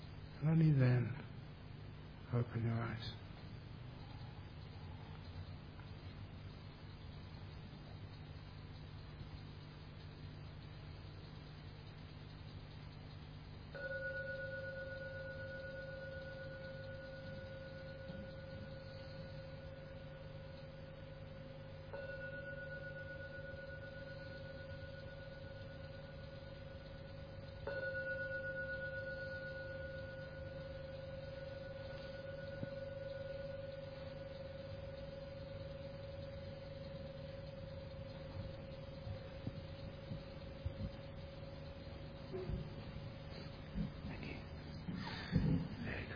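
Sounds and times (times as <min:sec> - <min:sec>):
low drone: 0:00.0 - 0:46.1
speech: 0:00.4 - 0:01.2, 0:02.3 - 0:03.2
gong strokes: 0:13.8 - 0:43.6.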